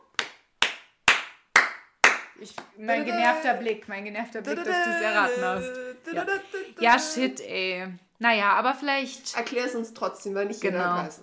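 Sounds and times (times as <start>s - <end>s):
sharp hand claps: 0.0s - 3.4s
speech: 2.4s - 11.2s
laughter: 4.5s - 7.3s.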